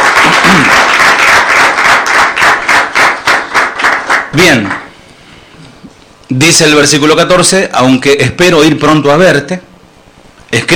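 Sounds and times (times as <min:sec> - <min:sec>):
audience applauding: 0:00.0 - 0:04.9
speech: 0:04.4 - 0:04.8, 0:06.3 - 0:09.7, 0:10.5 - 0:10.7.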